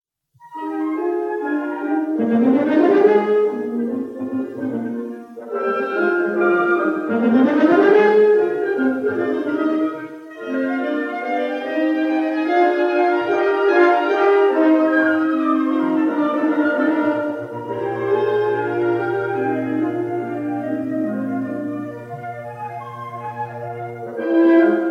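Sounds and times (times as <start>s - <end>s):
wind quintet in E flat major: 0.4s - 24.8s.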